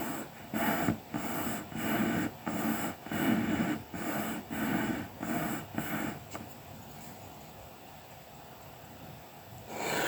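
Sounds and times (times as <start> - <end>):
colouring pencil strokes on paper: 0.0 - 6.4
faint hiss: 0.0 - 10.0.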